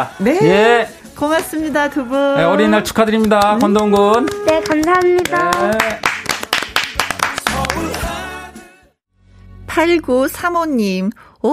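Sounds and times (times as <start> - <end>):
speech: 0.0 - 6.1, 9.8 - 11.5
clapping: 3.2 - 8.1.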